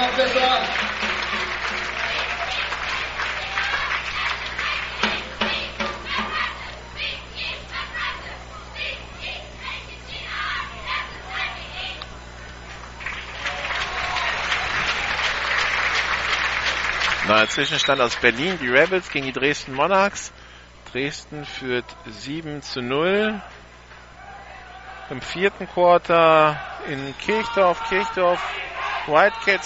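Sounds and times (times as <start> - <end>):
crowd applause at an American football game: 0.0 - 6.5, 12.7 - 20.3
crowd cheering at an American football game: 0.0 - 12.0, 12.8 - 20.0, 23.0 - 29.6
speech: 17.4 - 23.6, 25.1 - 29.6.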